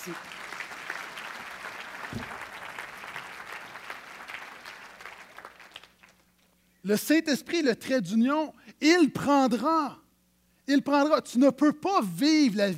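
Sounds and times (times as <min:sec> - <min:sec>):
speech: 0:00.0 - 0:00.3, 0:06.8 - 0:10.0, 0:10.7 - 0:12.7
audience applauding: 0:00.0 - 0:06.4.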